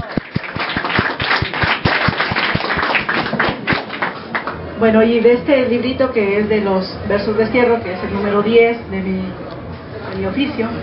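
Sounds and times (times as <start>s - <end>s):
audience applause: 0.0s - 4.6s
speech: 4.8s - 9.4s, 10.2s - 10.8s.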